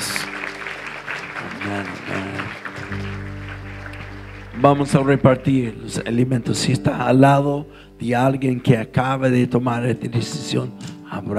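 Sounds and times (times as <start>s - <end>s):
crowd clapping: 0.0s - 6.7s
low musical tones: 0.0s - 11.3s
speech: 1.6s - 2.6s, 4.6s - 11.3s.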